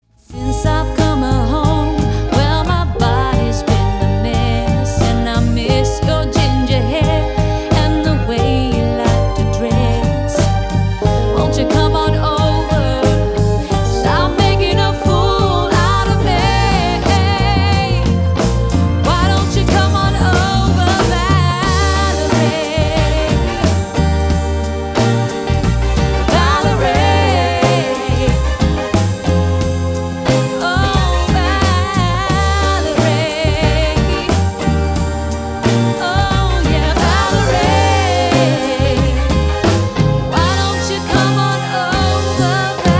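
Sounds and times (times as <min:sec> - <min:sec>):
melodica: 0:00.5 - 0:42.9.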